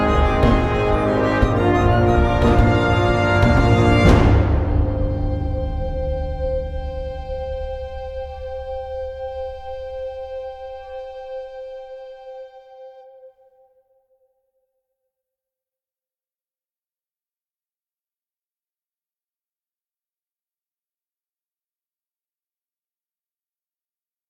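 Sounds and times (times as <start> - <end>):
music stem: 0.0 - 12.4.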